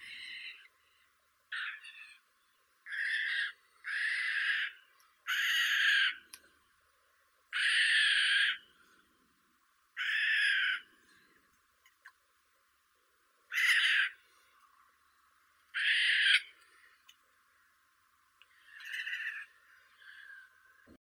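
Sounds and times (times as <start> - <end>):
Garrulus glandarius jay calling: 1.5 - 2.2, 2.8 - 6.3, 7.5 - 8.7, 10.0 - 10.9, 13.5 - 14.2, 15.7 - 16.8, 18.5 - 20.5.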